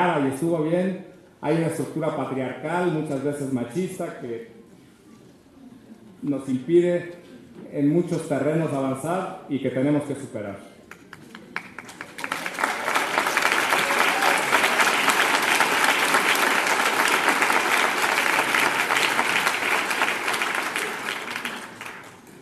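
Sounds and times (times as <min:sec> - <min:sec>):
speech: 0:00.0 - 0:04.6, 0:06.2 - 0:10.7
audience applause: 0:11.2 - 0:22.4.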